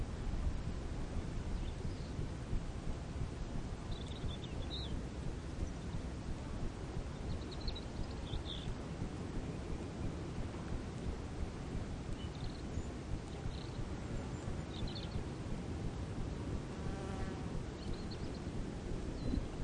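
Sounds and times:
faint ocean: 0.0 - 19.6
insects: 0.6 - 19.6
small birds tweeting by the sea: 1.5 - 2.2, 3.9 - 6.3, 7.0 - 10.5, 12.0 - 15.4, 17.1 - 19.5.

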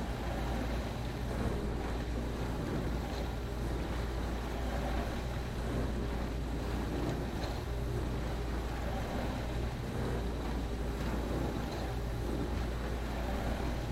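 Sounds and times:
Whirlpool dishwasher wash cycle running: 0.0 - 13.8.

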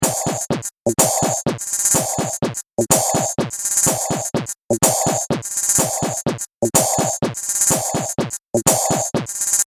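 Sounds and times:
techno beat at 125 BPM: 0.0 - 9.6.

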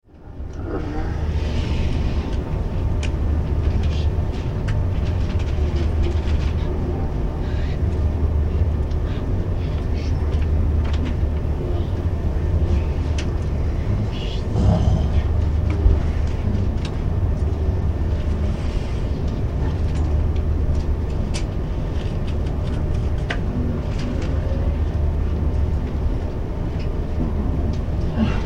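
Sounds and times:
Airbus 319 or 320 interior stationary during boarding: 0.1 - 28.4
passengers boarding an Airbus 319 or 320: 0.2 - 28.4.

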